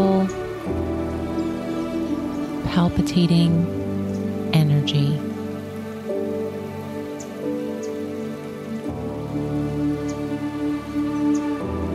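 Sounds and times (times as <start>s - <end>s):
rushing water: 0.0s - 11.9s
speech: 2.7s - 3.8s, 4.6s - 5.3s.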